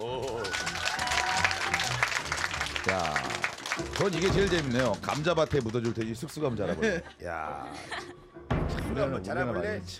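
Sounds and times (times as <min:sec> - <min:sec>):
professor and others clapping in a lecture hall: 0:00.1 - 0:06.4
speech: 0:04.0 - 0:09.9
laughter: 0:06.4 - 0:08.3.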